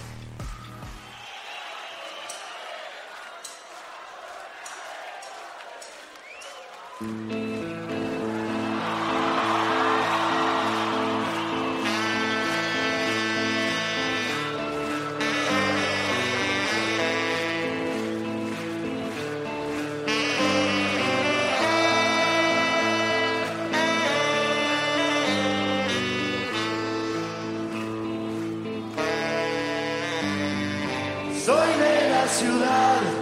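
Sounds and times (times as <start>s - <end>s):
rock song by a Uruguayan rock band: 7.1s - 33.1s.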